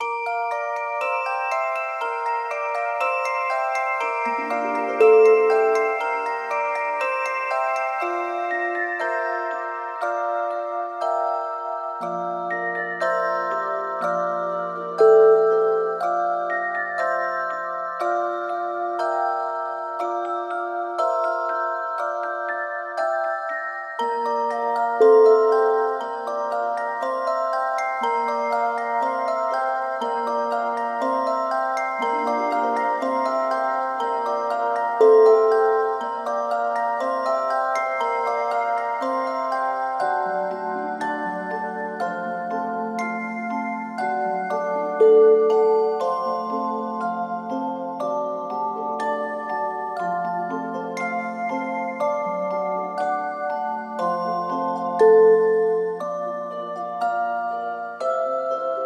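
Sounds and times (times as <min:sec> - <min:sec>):
magical toy box sound: 0:00.0 - 0:58.8.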